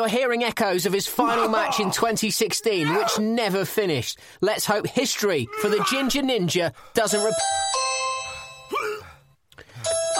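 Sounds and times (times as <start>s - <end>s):
speech: 0.0s - 7.8s
doorbell ding-dong chime: 7.1s - 8.7s, 9.8s - 10.1s.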